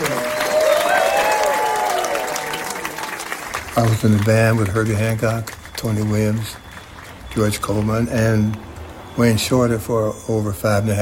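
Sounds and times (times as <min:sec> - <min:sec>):
audience applause welcoming a guest: 0:00.0 - 0:08.7
speech: 0:03.8 - 0:06.6, 0:07.4 - 0:11.0.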